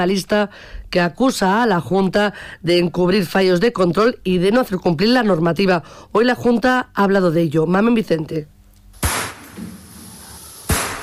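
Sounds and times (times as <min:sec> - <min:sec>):
speech: 0:00.0 - 0:08.5
gunshots in a slaughterhouse in Segovia where fawns were shot: 0:09.0 - 0:09.6, 0:10.6 - 0:11.0.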